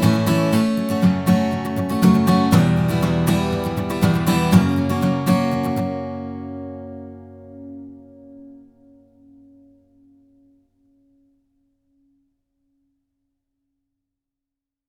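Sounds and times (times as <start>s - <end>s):
acoustic guitar: 0.0s - 11.2s.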